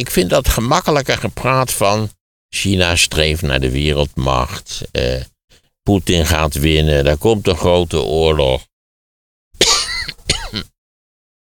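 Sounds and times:
speech: 0:00.0 - 0:08.7, 0:10.5 - 0:10.7
coughing fit from someone getting worked up: 0:09.6 - 0:10.8.

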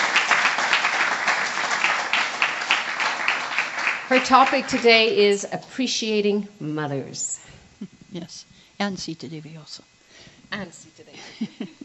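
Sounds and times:
audience applause welcoming a speaker at a talk: 0:00.0 - 0:05.2
speech: 0:04.1 - 0:07.4, 0:08.2 - 0:11.8.

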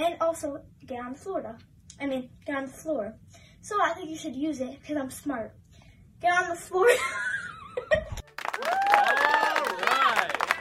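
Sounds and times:
speech: 0:00.0 - 0:05.6, 0:06.2 - 0:08.0
crowd clapping along: 0:08.2 - 0:10.5
high sliding whoops and cries: 0:08.5 - 0:10.5.

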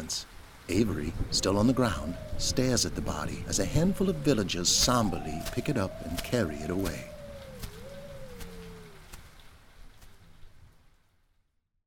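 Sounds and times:
heavy rain drumming on a taut tent roof: 0:00.0 - 0:01.9
speech: 0:00.1 - 0:07.1
faint wavering tone: 0:01.3 - 0:09.1.

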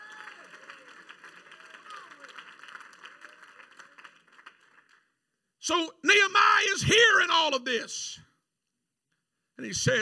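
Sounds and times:
audience clapping: 0:00.0 - 0:05.4
speech: 0:05.7 - 0:08.3, 0:09.6 - 0:10.0.

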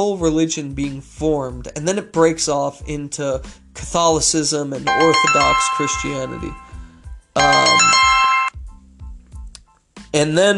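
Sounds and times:
speech: 0:00.0 - 0:06.6, 0:07.4 - 0:08.1, 0:10.1 - 0:10.5
phone ringtone: 0:04.9 - 0:08.6.

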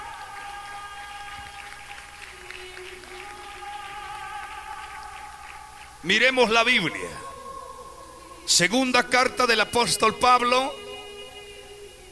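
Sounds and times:
church congregation clapping hands during a sermon: 0:00.0 - 0:07.2
speech: 0:06.0 - 0:07.3, 0:08.5 - 0:10.8.

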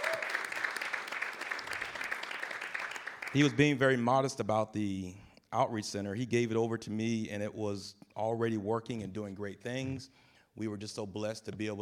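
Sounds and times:
audience round of applause: 0:00.0 - 0:03.6
speech: 0:03.3 - 0:11.8.

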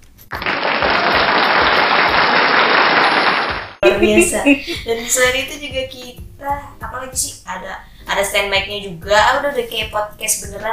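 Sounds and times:
hand clapping: 0:00.3 - 0:04.1
speech: 0:04.0 - 0:10.7.

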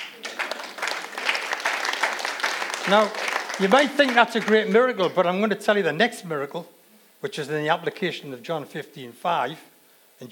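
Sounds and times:
audience applause: 0:00.0 - 0:04.9
speech: 0:02.9 - 0:10.3.

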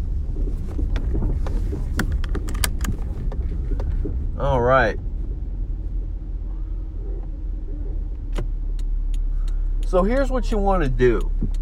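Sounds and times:
car engine and road noise: 0:00.0 - 0:11.6
speech: 0:04.4 - 0:05.1, 0:09.9 - 0:11.6.

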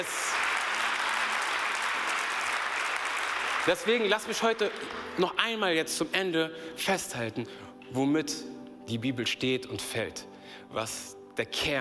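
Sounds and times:
speech: 0:00.0 - 0:00.2, 0:03.6 - 0:11.7
audience applause: 0:00.0 - 0:05.0.

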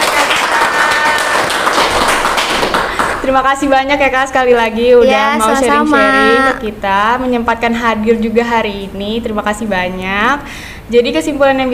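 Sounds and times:
applause, hands clapping: 0:00.0 - 0:03.3
speech: 0:03.2 - 0:11.7.

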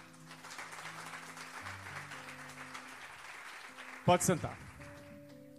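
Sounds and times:
audience applause: 0:00.0 - 0:05.4
speech: 0:04.1 - 0:04.7.

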